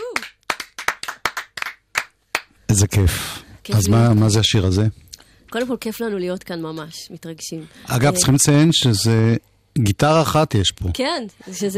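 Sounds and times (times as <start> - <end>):
hand clapping: 0.0 - 2.5
speech: 2.7 - 11.7.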